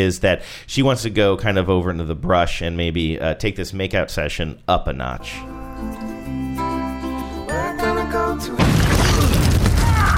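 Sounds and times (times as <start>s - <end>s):
speech: 0.0s - 6.1s
tonal music: 5.2s - 9.0s
landmine explosion in a film scene on a beach: 8.6s - 10.1s.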